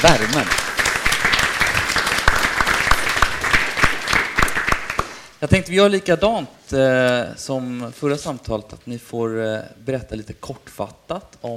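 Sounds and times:
speech: 0.0s - 0.7s, 5.4s - 11.5s
audience applause: 0.0s - 5.3s.

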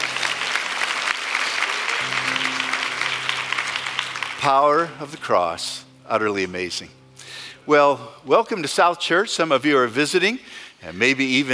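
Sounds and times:
audience clapping: 0.0s - 5.6s
speech: 4.4s - 7.0s, 7.6s - 11.5s.

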